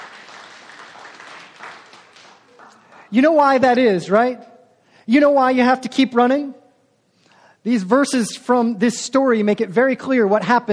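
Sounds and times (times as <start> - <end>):
audience clapping: 0.0 - 3.2
speech: 3.1 - 4.5, 5.1 - 6.6, 7.6 - 10.7.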